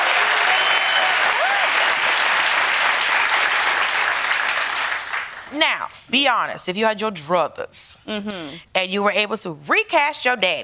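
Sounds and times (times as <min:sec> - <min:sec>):
faint whoops: 0:00.0 - 0:02.0
audience applause: 0:00.0 - 0:05.5
speech: 0:05.6 - 0:10.6.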